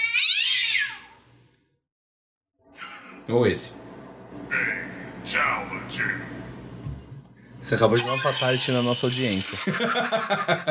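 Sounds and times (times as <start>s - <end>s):
cats fighting and caterwauling: 0.0s - 1.2s, 8.0s - 9.5s
speech: 3.3s - 3.8s, 4.5s - 6.5s, 7.6s - 10.6s
laughter: 9.4s - 10.6s.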